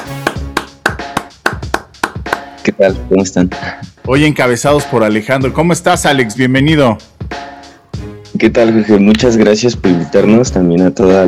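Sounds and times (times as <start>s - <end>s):
applause: 0.0s - 2.5s
speech: 2.6s - 7.1s, 8.4s - 11.2s.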